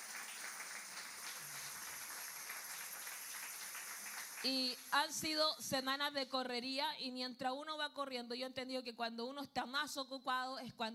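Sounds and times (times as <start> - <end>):
audience applauding: 0.0 - 4.8
speech: 4.4 - 10.9.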